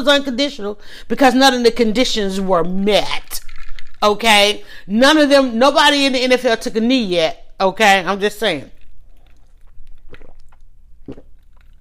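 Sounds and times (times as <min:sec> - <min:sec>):
speech: 0:00.0 - 0:03.4, 0:04.0 - 0:08.8
person sipping a drink: 0:08.8 - 0:11.7.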